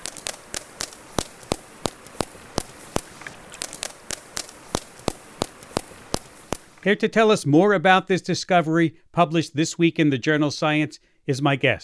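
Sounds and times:
whale echolocation vocal fry clicks: 0.0s - 6.9s
speech: 6.8s - 11.8s.

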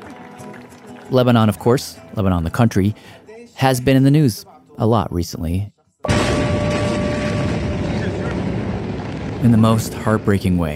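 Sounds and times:
speech: 1.1s - 5.8s, 9.4s - 10.7s
large explosion: 6.1s - 10.7s.

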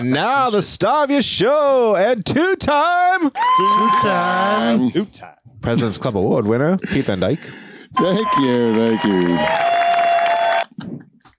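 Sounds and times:
speech: 0.0s - 9.7s
audience applause: 8.0s - 10.7s.

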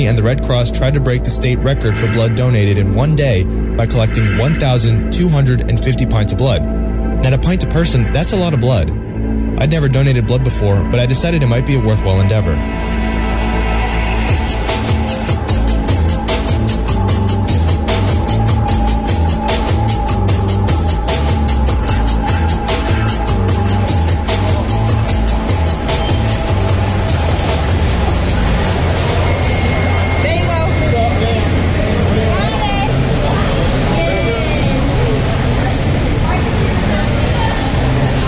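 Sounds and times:
speech: 0.0s - 13.1s
crowd hubbub in Carmichael Gym during a blood drive: 13.4s - 38.2s.

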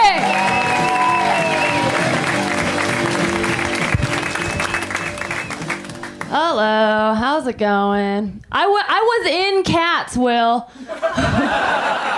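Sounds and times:
crowd applauding for comedian: 0.0s - 6.3s
speech: 7.4s - 12.1s
laughter: 10.9s - 12.1s.

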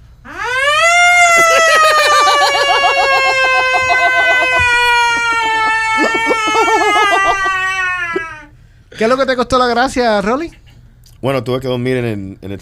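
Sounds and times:
siren sound effect: 0.2s - 7.4s
laughter: 1.3s - 9.2s
speech: 9.0s - 10.6s, 11.2s - 12.5s.

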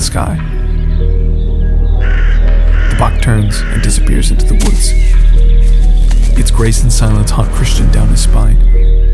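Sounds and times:
speech: 0.1s - 1.2s, 3.0s - 8.9s
crow cawing: 1.9s - 4.3s.

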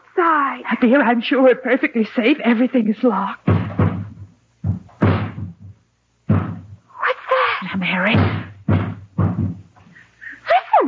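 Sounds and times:
speech: 0.2s - 3.4s, 8.0s - 8.4s
ladder being set against the side of a house: 3.5s - 5.7s, 6.3s - 6.8s, 8.1s - 9.7s.

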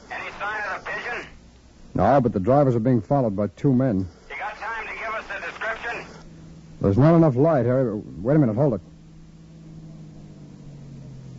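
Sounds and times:
speech: 2.0s - 4.2s, 6.8s - 8.9s
car engine humming: 6.2s - 11.3s.

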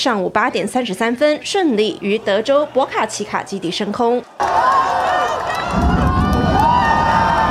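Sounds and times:
speech: 0.0s - 5.9s
space fans cheering loudly at launch: 1.6s - 7.4s.

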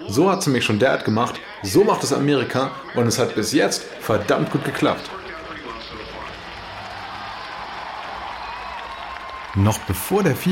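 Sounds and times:
speech: 0.1s - 5.2s, 9.6s - 10.5s
large convention crowd cheering and applauding wildly: 3.0s - 10.5s.

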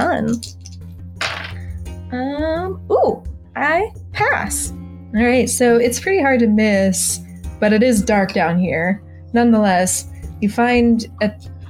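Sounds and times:
speech: 0.0s - 0.6s, 2.1s - 11.6s
dice clattering from a dice tower: 0.2s - 1.6s.

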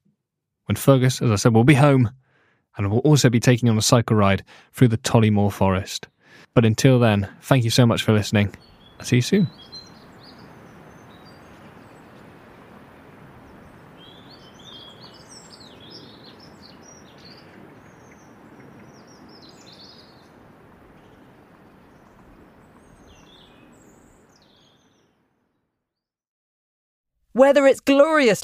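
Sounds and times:
speech: 0.7s - 9.7s, 27.5s - 28.4s
migrating birds calling: 7.6s - 25.3s.

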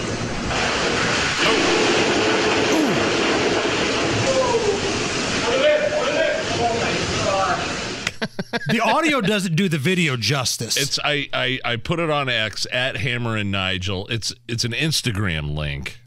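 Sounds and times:
beer blasting out of a pressurized tank: 0.0s - 8.0s
laughter: 8.0s - 9.6s
speech: 8.4s - 16.0s.

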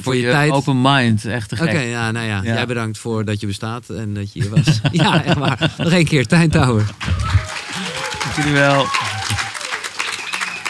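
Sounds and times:
speech: 0.0s - 7.4s, 8.4s - 9.0s
laughter: 4.4s - 10.6s
group applauding: 6.3s - 10.6s.

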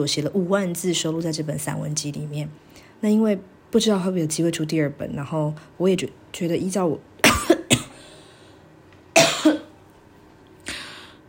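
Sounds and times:
speech: 0.0s - 7.1s
person coughing: 7.2s - 8.0s, 9.2s - 9.8s.

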